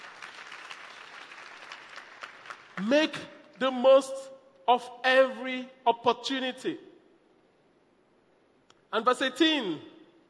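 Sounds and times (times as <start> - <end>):
audience clapping: 0.0 - 3.6
speech: 2.8 - 6.9, 8.9 - 9.9.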